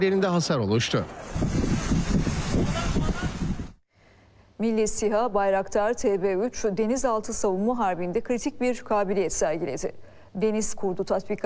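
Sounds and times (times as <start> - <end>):
speech: 0.0 - 3.1, 4.6 - 11.4
strong wind on a beach in Antalya buffeting the microphone: 1.1 - 3.8.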